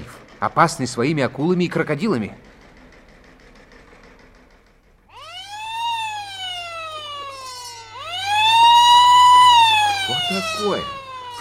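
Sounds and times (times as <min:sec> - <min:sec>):
speech: 0:00.4 - 0:02.5
wailing alarm siren: 0:05.1 - 0:11.3.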